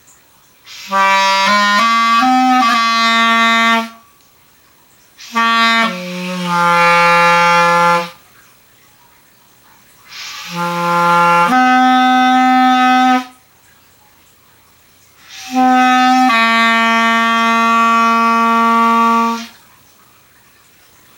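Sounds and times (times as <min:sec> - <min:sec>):
clarinet: 0:00.7 - 0:04.0, 0:05.2 - 0:08.2, 0:10.1 - 0:13.4, 0:15.2 - 0:19.6.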